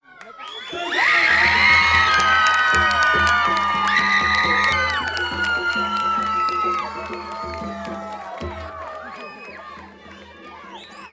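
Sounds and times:
massive scream: 0.8s - 9.2s.

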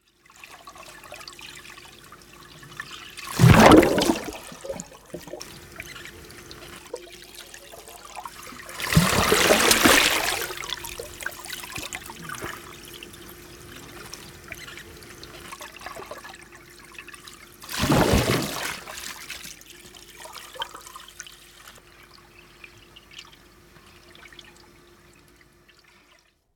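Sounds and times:
underwater diving sounds in a swimming pool: 3.2s - 16.5s.

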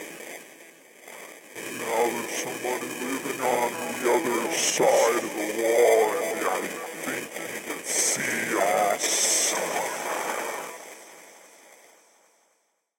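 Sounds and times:
horror sound design effects: 1.7s - 11.7s.

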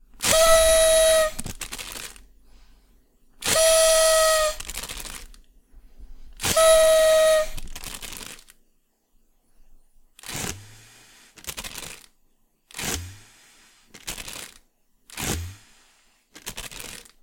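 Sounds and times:
party whistle being blown: 0.2s - 1.6s, 3.4s - 5.2s, 6.4s - 7.9s.

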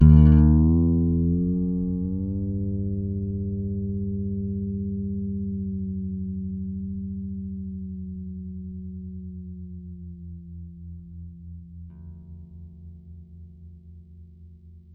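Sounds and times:
bass A string being tuned: 0.0s - 14.9s.

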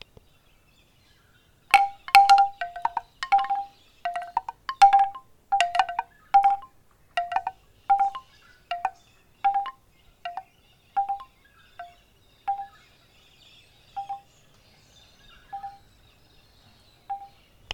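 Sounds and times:
bamboo wind chimes: 1.7s - 12.8s, 13.9s - 14.3s, 15.4s - 16.0s, 17.0s - 17.4s.

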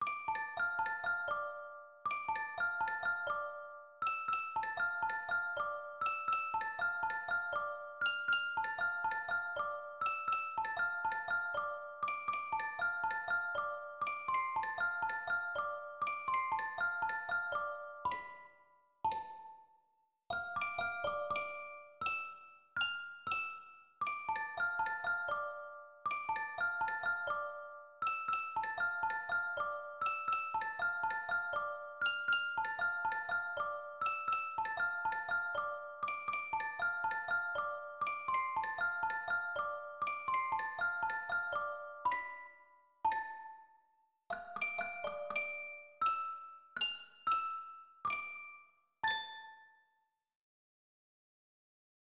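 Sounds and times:
music box: 0.0s - 50.2s.

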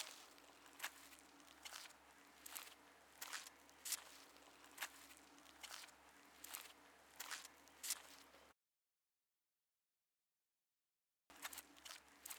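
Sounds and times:
footsteps on sand: 0.0s - 8.3s.

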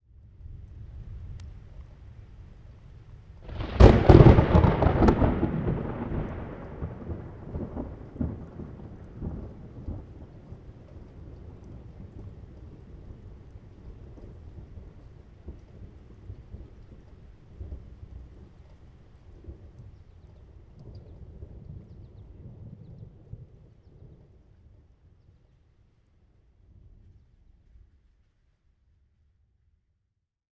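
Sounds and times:
light rain on a roof in Toronto: 0.1s - 29.1s
close thunder crack in Toronto: 3.4s - 10.1s.

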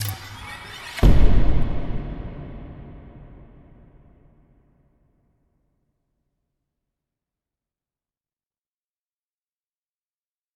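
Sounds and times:
sliding boom: 0.0s - 4.3s.

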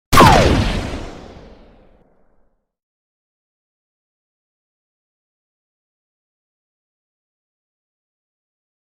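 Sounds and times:
laser gun shot: 0.1s - 2.0s.

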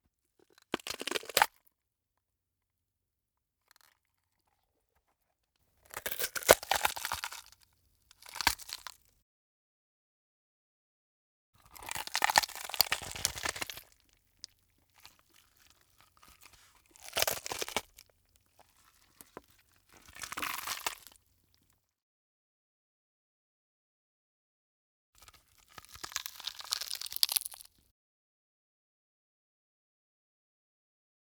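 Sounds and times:
gore bursting horror body tear: 0.8s - 1.5s, 6.0s - 7.5s, 8.2s - 9.0s, 11.8s - 14.0s, 15.0s - 18.0s, 18.6s - 21.2s, 25.7s - 27.7s.

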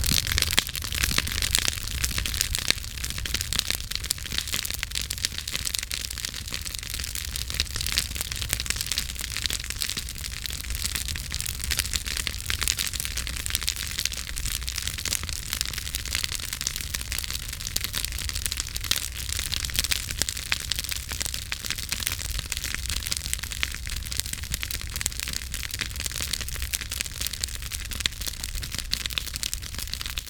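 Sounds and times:
campfire: 0.0s - 30.2s.

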